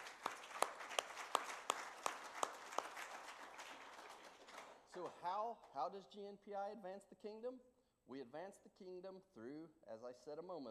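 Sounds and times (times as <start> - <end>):
people clapping for the church: 0.0 - 5.9
speech: 5.0 - 10.6.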